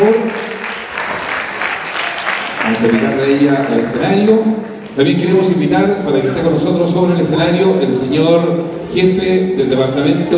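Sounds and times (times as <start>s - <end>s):
audience applause: 0.0s - 5.0s
speech: 2.8s - 10.3s.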